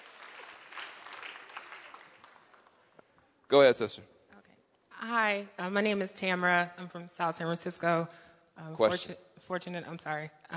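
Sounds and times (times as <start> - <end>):
audience applause: 0.0 - 2.9
speech: 3.5 - 4.2, 5.1 - 10.5.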